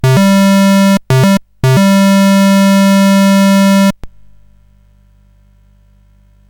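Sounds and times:
SID chiptune music on CSG8580R5 chip: 0.0 - 4.0.

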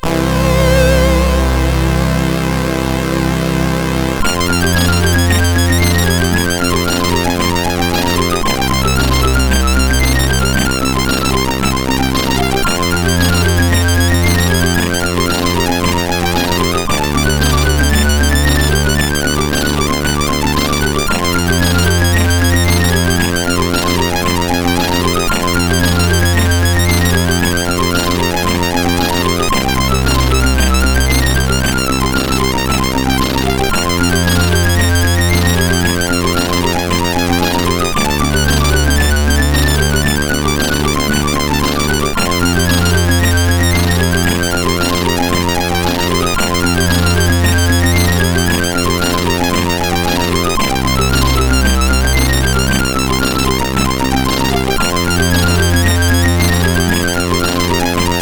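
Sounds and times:
loader tune on CSG8580R5: 0.0 - 58.1.

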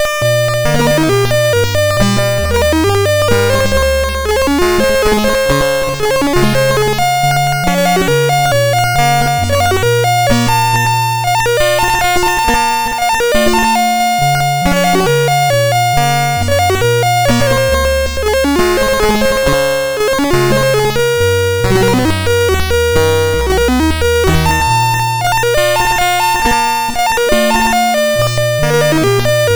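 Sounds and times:
generated chiptune music on SID MOS6581R2 chip: 0.0 - 29.5.

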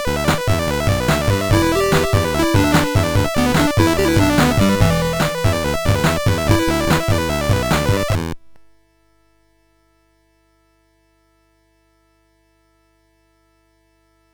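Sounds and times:
MOS6581R4 SID chip music: 0.0 - 8.4.

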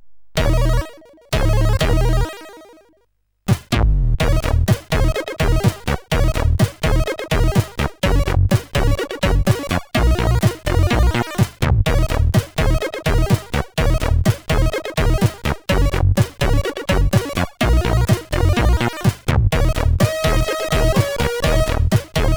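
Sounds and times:
SID CSG8580R5 chip music: 0.4 - 2.9, 3.5 - 22.3.

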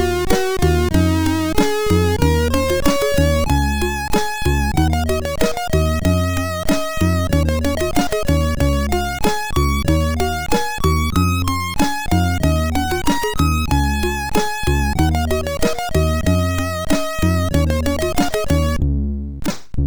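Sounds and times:
end music on MOS6581R4 sound chip: 0.0 - 18.8.

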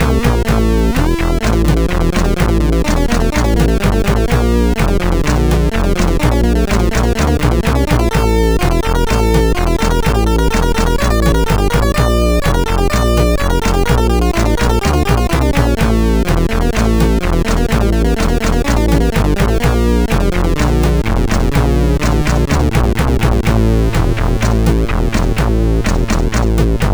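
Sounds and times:
SID chip CSG8580R5 sheep sound: 0.1 - 26.7.

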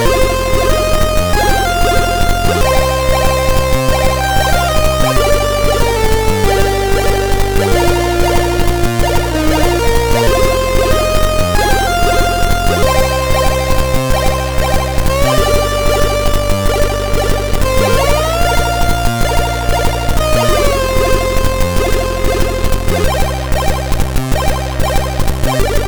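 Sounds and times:
SID MOS6581R3 chip arpeggio: 0.0 - 25.8.

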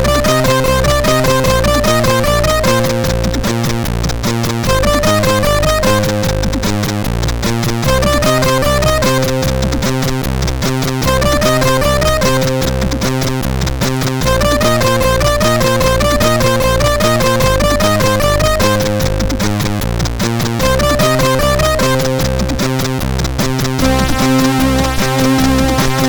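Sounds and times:
CSG 8580R5 synthesizer chip sound: 0.0 - 26.0.

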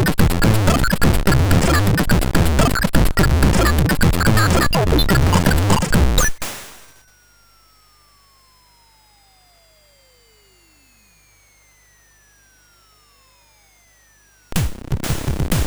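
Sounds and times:
MOS6581 chiptune music: 0.0 - 6.4.

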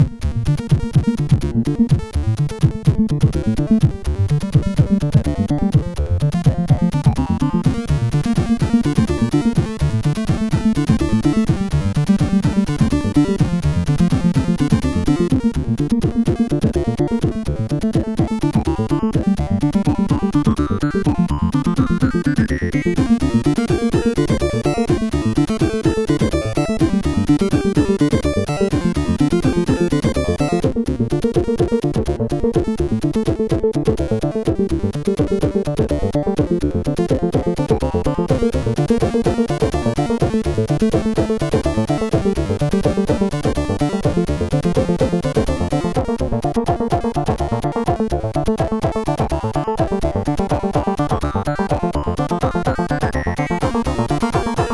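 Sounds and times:
SID 8580R5 chip synthesizer: 0.0 - 54.7.

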